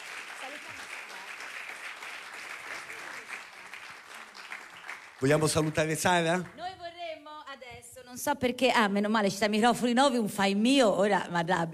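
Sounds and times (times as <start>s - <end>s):
crowd applause: 0.0s - 6.6s
speech: 5.2s - 6.7s, 8.2s - 11.7s.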